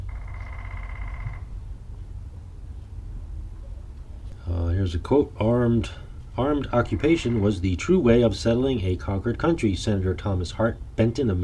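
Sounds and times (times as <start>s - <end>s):
woodpecker rattle: 0.0s - 2.0s, 6.2s - 8.3s
steady low rumbling noise: 0.0s - 11.4s
speech: 4.5s - 11.4s.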